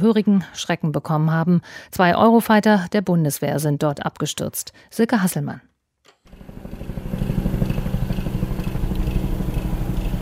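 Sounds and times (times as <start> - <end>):
speech: 0.0 - 5.7
Bundeswehr military helicopters circling overhead: 6.3 - 10.2.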